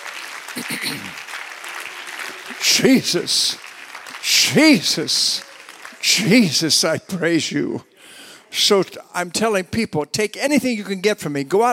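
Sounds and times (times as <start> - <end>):
audience clapping: 0.0 - 7.4
speech: 0.6 - 1.3, 2.5 - 3.6, 4.3 - 7.9, 8.5 - 11.7.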